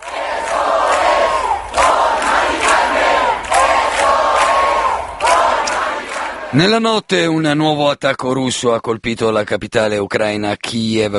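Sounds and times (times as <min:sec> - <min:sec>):
large crowd of protesters chanting at a commemoration: 0:00.0 - 0:06.8
speech: 0:06.5 - 0:11.1.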